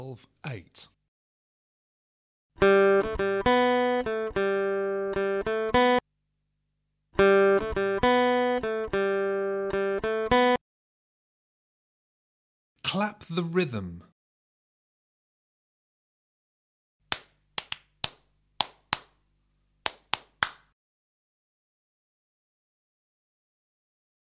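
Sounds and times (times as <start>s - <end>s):
acoustic guitar rhythm test: 2.6s - 6.0s, 7.2s - 10.6s, 17.1s - 19.1s, 19.9s - 20.7s.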